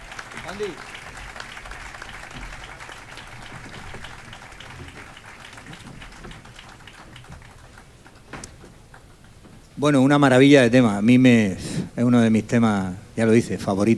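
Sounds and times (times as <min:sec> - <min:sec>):
audience applause: 0:00.0 - 0:09.1
speech: 0:00.5 - 0:01.0, 0:09.8 - 0:13.9.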